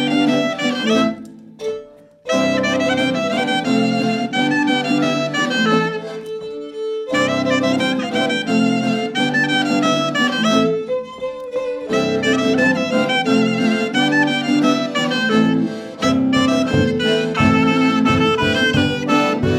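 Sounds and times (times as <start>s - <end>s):
musical accompaniment: 0.0s - 19.5s.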